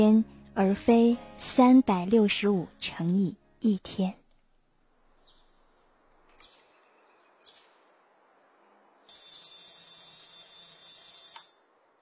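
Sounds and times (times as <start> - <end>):
speech: 0.0 - 4.2
sparrows chirping: 5.2 - 8.0
loud shrill electronic ringing: 9.1 - 11.6.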